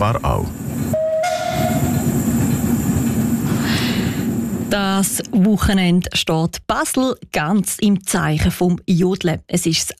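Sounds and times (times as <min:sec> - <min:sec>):
speech: 0:00.0 - 0:00.8, 0:04.7 - 0:09.9
steam tram running on rails: 0:00.0 - 0:09.9
brief high whistle tone: 0:01.0 - 0:02.1.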